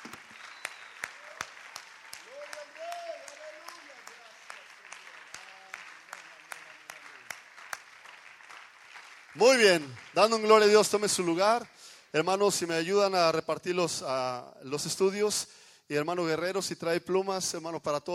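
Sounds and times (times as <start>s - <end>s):
audience applause: 0.0s - 12.0s
speech: 9.4s - 18.1s.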